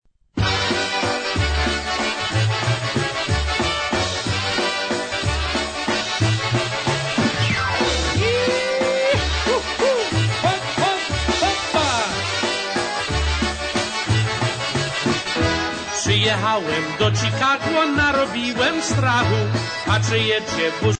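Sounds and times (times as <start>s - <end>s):
Polish oberek folk dance music: 0.4s - 20.9s.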